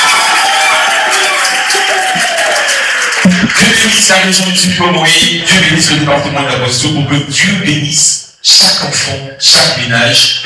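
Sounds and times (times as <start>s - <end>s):
audience applause: 0.0s - 4.2s
speech: 4.0s - 10.4s.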